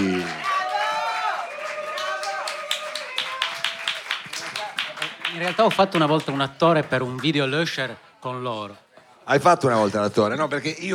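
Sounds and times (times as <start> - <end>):
audience applause: 0.0 - 7.4
speech: 5.4 - 10.9.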